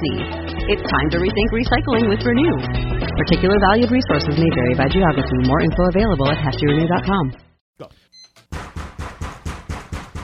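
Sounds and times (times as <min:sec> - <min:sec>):
speech: 0:00.0 - 0:08.0
loud knocking on a door: 0:08.4 - 0:10.2.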